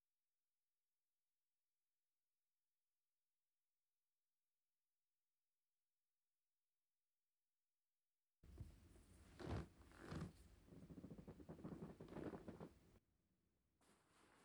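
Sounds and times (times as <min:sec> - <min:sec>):
ASMR ear massage on the right ear: 0:08.5 - 0:12.8.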